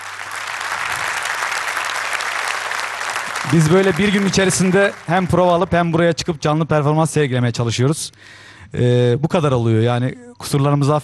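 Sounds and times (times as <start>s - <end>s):
audience applause: 0.0s - 6.0s
speech: 3.5s - 11.0s.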